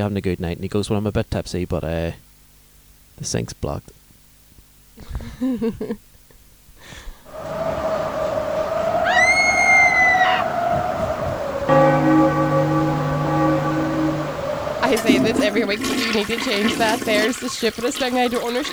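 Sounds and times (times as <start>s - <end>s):
speech: 0.0s - 2.2s, 3.2s - 4.0s, 5.0s - 6.1s, 15.0s - 18.7s
whooshing wind-like noise: 7.3s - 16.2s
bell chiming: 11.7s - 16.2s.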